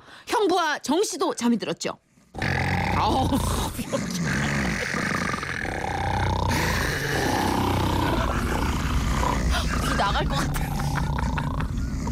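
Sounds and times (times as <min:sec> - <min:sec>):
speech: 0:00.4 - 0:02.0, 0:03.0 - 0:04.6, 0:10.0 - 0:10.8
man snoring loudly: 0:02.4 - 0:10.1, 0:10.7 - 0:12.0
laughter: 0:07.8 - 0:12.0.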